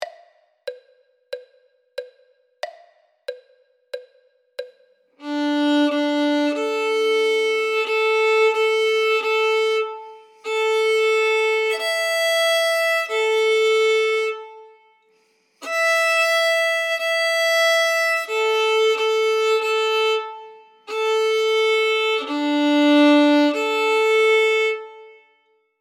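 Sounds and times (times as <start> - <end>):
first violin: 5.2 - 15.0, 15.6 - 25.6.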